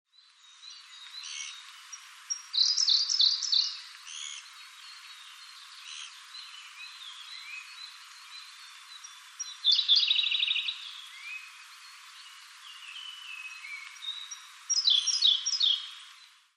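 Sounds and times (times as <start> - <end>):
Siberian blue robin singing: 0.1 - 16.0.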